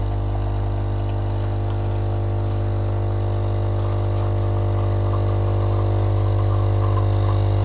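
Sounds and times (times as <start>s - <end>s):
espresso machine pump at 15 bar: 0.0s - 7.6s.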